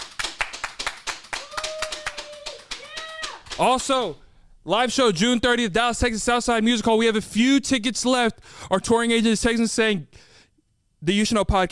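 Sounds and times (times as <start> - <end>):
round of applause: 0.0 - 4.0
speech: 3.6 - 10.3, 11.0 - 11.7.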